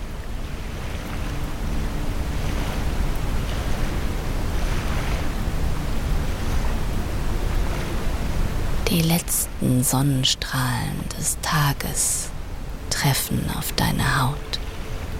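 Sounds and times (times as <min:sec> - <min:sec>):
ocean waves washing ashore: 0:00.0 - 0:15.1
speech: 0:09.0 - 0:12.3, 0:13.0 - 0:14.6.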